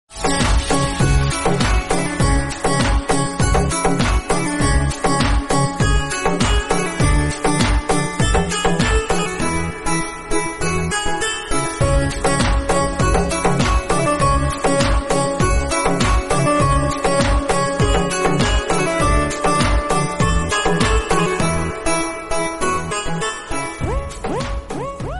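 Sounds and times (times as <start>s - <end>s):
romantic background music: 0.1s - 25.1s.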